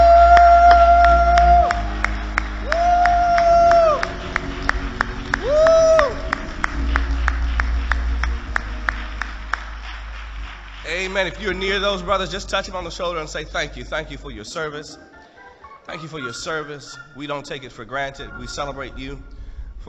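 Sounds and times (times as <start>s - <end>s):
audience applauding and cheering veterans: 0.0s - 12.8s
speech: 11.2s - 15.1s, 15.9s - 19.8s.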